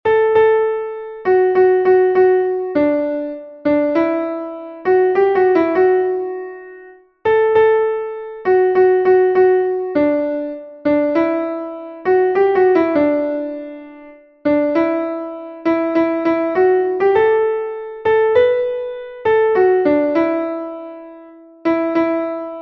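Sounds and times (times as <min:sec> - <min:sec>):
piano: 0:00.1 - 0:22.6.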